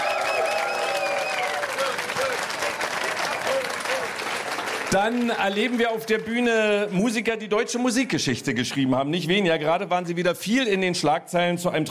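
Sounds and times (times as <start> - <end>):
faint voices and cheers in the crowd: 0.0 - 7.1
audience applause: 0.0 - 7.2
speech: 4.9 - 11.8.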